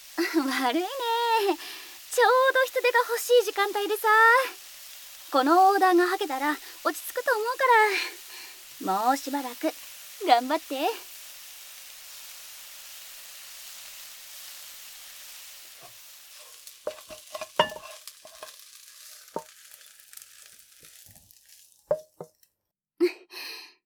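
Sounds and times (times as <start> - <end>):
yakisoba noodles frying on a griddle: 0.0 - 22.4
speech: 0.6 - 4.6, 5.3 - 8.2, 8.8 - 11.1
stirring scraping and clacking on a griddle: 15.8 - 22.4.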